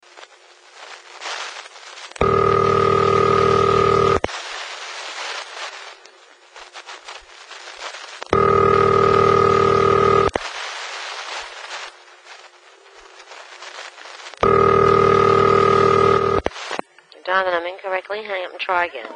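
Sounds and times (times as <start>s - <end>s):
New York telephone: 2.2s - 4.3s, 8.3s - 10.4s, 14.4s - 16.5s.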